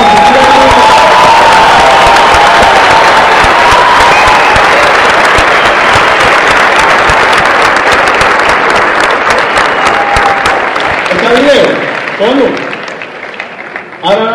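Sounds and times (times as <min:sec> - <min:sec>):
crowd cheering and whooping: 0:00.0 - 0:11.2
crowd applause: 0:00.0 - 0:14.3.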